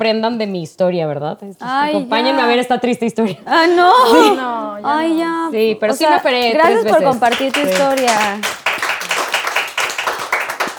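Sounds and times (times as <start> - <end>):
speech: 0.0 - 8.6
laughter: 1.6 - 9.5
hand clapping: 4.0 - 10.7.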